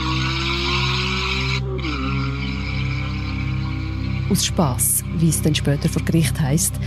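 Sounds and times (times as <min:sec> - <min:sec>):
rear-wheel-drive sports car accelerating hard and drifting on a wet road: 0:00.0 - 0:04.4
speech: 0:04.3 - 0:06.8.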